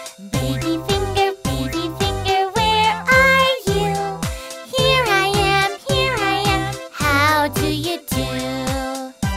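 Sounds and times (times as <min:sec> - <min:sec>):
girl singing an English children's song: 0:00.3 - 0:09.2.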